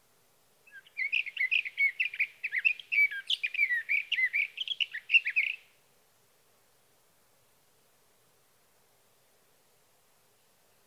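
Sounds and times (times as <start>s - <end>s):
sage thrasher singing a warble: 0.7s - 5.6s.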